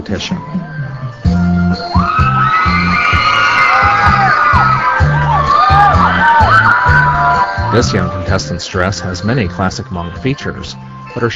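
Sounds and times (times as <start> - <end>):
speech: 0.0 - 1.9, 7.8 - 11.3
audience cheering and hooting: 1.7 - 8.2.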